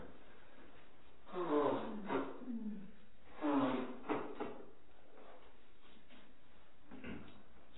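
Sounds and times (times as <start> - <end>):
nose blowing: 1.3 - 4.6.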